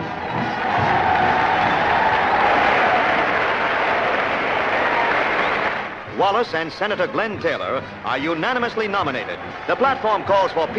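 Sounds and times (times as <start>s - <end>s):
large crowd of convention delegates cheering loudly: 0.0s - 6.2s, 8.4s - 10.7s
speech: 6.3s - 10.7s.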